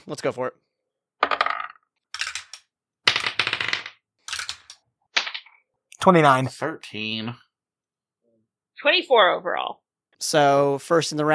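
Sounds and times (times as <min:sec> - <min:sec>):
speech: 0:00.0 - 0:00.7, 0:06.0 - 0:07.4, 0:08.8 - 0:11.3
dice rattling across a table in a tabletop role-playing game: 0:01.2 - 0:05.6.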